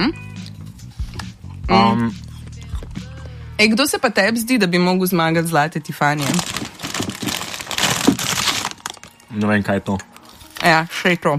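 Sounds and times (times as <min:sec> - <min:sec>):
speech: 0:01.7 - 0:02.2, 0:03.6 - 0:06.8, 0:09.4 - 0:11.3
plastic snack bag of crushed Plazma biscuits crinkling: 0:06.1 - 0:09.3.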